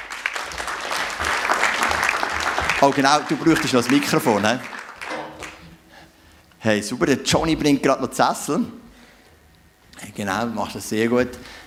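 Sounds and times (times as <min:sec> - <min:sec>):
church event audience clapping for a worship leader: 0:00.0 - 0:05.8
speech: 0:02.8 - 0:04.8, 0:06.6 - 0:08.8, 0:10.2 - 0:11.6.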